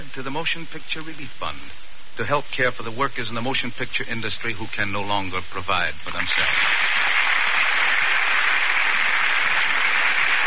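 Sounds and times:
speech: 0.2 - 7.0
audience applause: 6.3 - 10.4.

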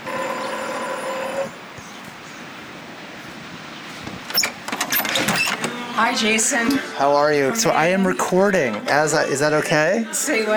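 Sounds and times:
sharp clicks and rattles: 0.0 - 6.0
door buzzer ringing: 0.0 - 6.2
speech: 6.0 - 10.5.

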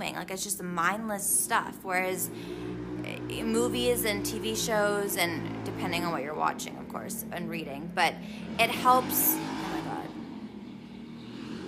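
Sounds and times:
speech: 0.2 - 9.6
old car driving past: 1.6 - 11.6.

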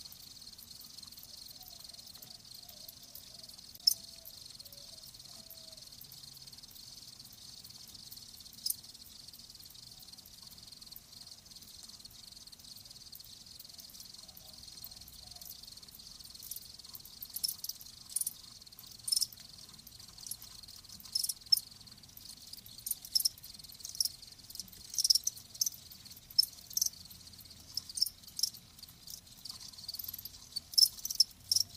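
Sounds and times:
crickets trilling: 0.0 - 31.7
soft hiss: 0.0 - 31.7.

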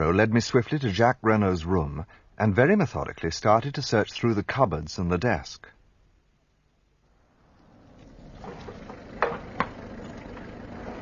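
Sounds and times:
speech: 0.0 - 5.8
car driving up: 7.1 - 11.0.

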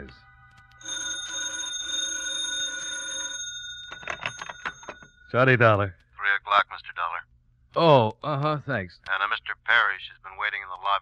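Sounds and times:
old-fashioned telephone bell ringing: 0.8 - 5.3
speech: 5.3 - 11.0.

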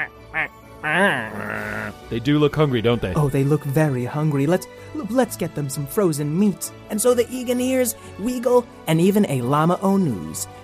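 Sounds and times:
speech: 0.0 - 1.5, 2.1 - 10.6
flock of penguins at the South Pole calling: 0.0 - 1.9.

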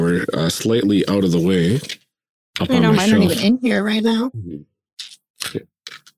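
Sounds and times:
speech: 0.1 - 2.0, 2.6 - 5.7
dice rolling and clacking: 5.0 - 6.1.

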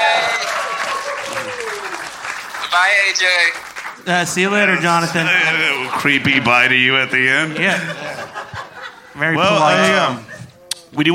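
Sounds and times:
round of applause: 0.0 - 4.1
speech: 2.8 - 8.4, 9.2 - 10.3, 10.9 - 11.1
laughter: 4.5 - 10.6.

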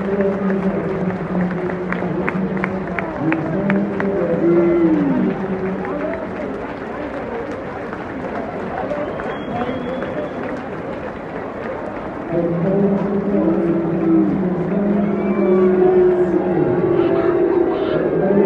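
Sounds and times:
rhythmic evenly spaced claps: 0.0 - 16.6
large football stadium crowd roaring: 0.0 - 18.4
low droning chant of many voices: 15.2 - 18.4.

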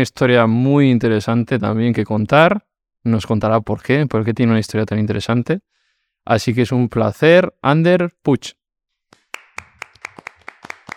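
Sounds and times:
speech: 0.0 - 8.6
hand clapping from a single person: 9.1 - 10.9.

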